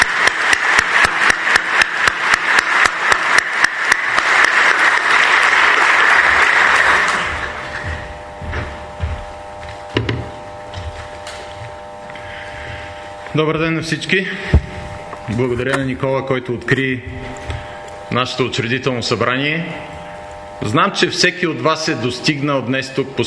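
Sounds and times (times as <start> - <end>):
audience applause: 0.0 - 7.8
speech: 13.4 - 14.6, 15.3 - 17.3, 18.1 - 20.0, 20.6 - 23.2.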